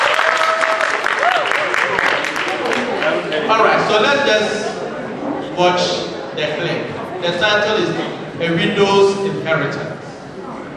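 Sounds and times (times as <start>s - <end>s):
audience applause: 0.0s - 3.4s
speech: 3.5s - 4.7s, 5.6s - 10.0s.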